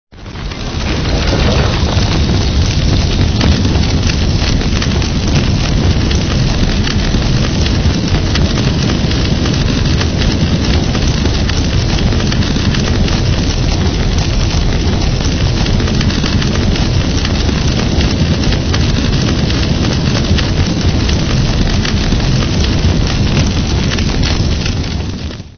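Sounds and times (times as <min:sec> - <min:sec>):
fire: 0:00.1 - 0:25.5.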